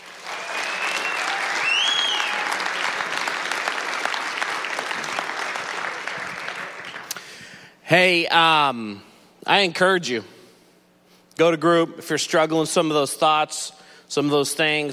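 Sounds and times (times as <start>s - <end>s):
audience applause: 0.0s - 7.2s
faint cheer or whistle: 0.2s - 2.8s
speech: 7.9s - 10.4s, 11.4s - 14.9s.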